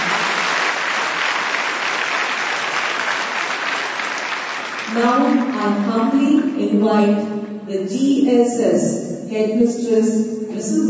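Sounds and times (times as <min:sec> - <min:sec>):
loud round of applause: 0:00.0 - 0:05.6
speech: 0:05.0 - 0:10.8.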